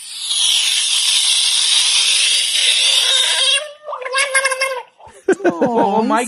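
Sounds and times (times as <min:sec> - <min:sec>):
buggy-eyed frog hissing and gurgling while sinking below the water: 0:00.0 - 0:05.0
laughter: 0:05.0 - 0:06.2
speech: 0:05.4 - 0:06.2.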